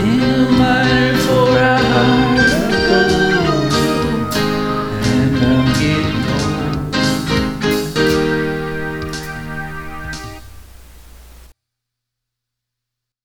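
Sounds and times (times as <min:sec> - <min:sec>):
person singing: 0:00.0 - 0:10.2.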